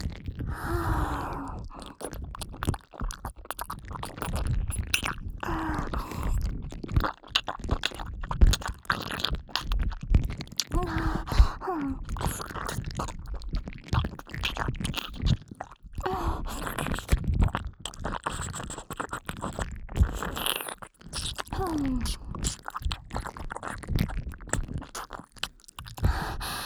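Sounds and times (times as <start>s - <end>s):
ear licking with a little saliva in the right ear: 0.0s - 26.6s.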